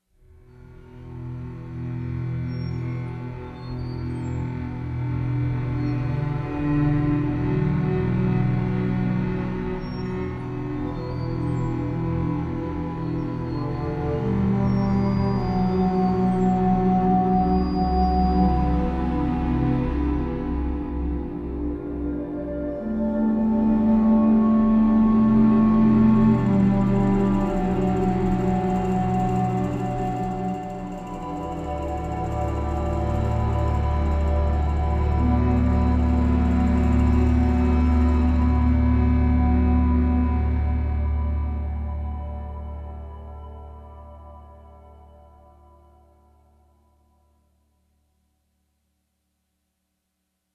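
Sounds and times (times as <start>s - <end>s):
desert film score music: 0.3s - 46.5s.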